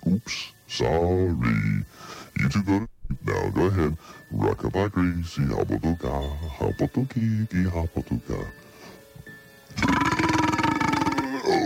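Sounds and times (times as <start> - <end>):
speech: 0.2 - 8.6
man belching: 9.8 - 11.6.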